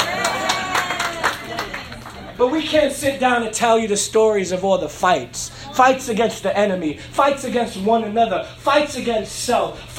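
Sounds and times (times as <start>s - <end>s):
audience clapping: 0.0s - 2.4s
speech: 2.4s - 9.9s.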